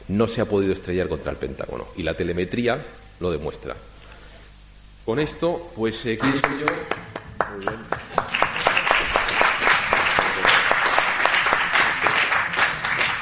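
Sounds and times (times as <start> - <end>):
speech: 0.1 - 4.0, 5.0 - 8.1
audience applause: 6.2 - 13.2.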